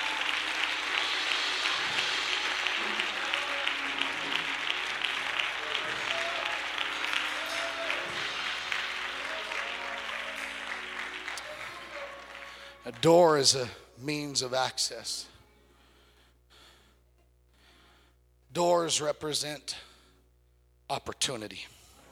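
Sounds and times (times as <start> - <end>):
audience clapping hands: 0.0 - 13.7
speech: 12.9 - 15.3, 18.6 - 19.9, 20.9 - 21.8.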